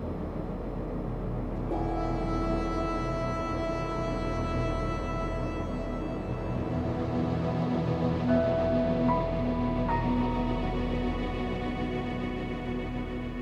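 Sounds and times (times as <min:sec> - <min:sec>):
suspense ambience music: 0:00.0 - 0:13.4.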